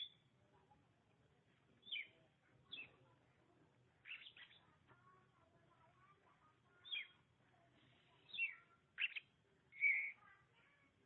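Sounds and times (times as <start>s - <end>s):
Oriental magpie-robin whistled song: 0.0s - 0.2s, 1.8s - 2.9s, 4.1s - 4.6s, 6.8s - 7.2s, 8.3s - 10.2s.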